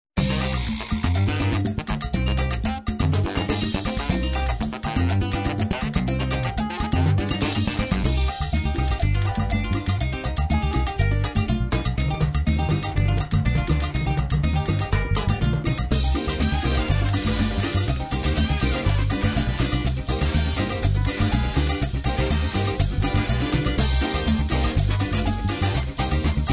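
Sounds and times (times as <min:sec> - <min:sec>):
cumbia promo music: 0:00.2 - 0:26.5.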